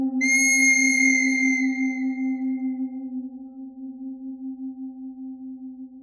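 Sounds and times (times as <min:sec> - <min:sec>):
bird thread harmonic: 0:00.2 - 0:04.1.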